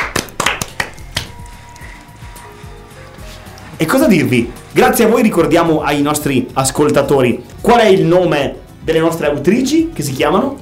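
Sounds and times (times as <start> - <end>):
hand clapping applause: 0.0 - 2.1
speech: 3.8 - 10.6.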